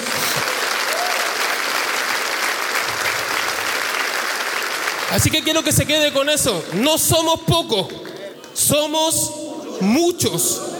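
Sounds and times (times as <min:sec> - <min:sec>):
audience applause: 0:00.0 - 0:08.6
speech: 0:05.1 - 0:10.7.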